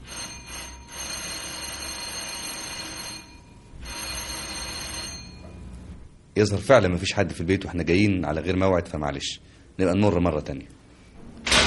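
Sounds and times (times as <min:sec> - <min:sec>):
apartment doorbell ringing with a rattling metallic buzz: 0:00.0 - 0:05.6
speech: 0:06.4 - 0:10.8.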